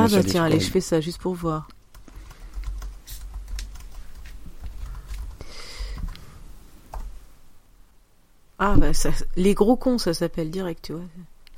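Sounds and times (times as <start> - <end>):
speech: 0.0 - 1.8, 8.6 - 11.5
computer keyboard typing a search: 1.8 - 6.2.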